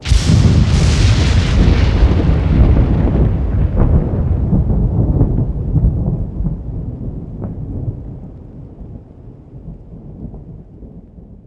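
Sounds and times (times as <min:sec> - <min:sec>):
lightning thunder strike: 0:00.0 - 0:09.0.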